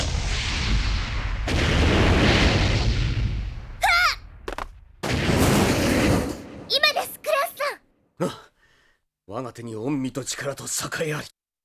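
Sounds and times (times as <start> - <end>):
landmine explosion: 0.0 - 7.6
speech: 9.4 - 11.4.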